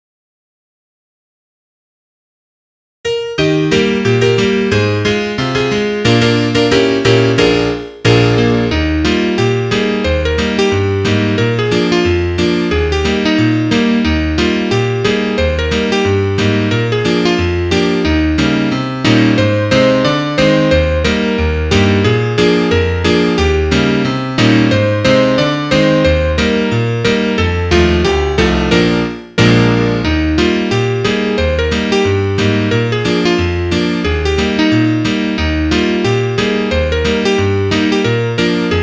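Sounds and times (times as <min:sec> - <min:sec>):
solo piano: 0:03.1 - 0:38.8.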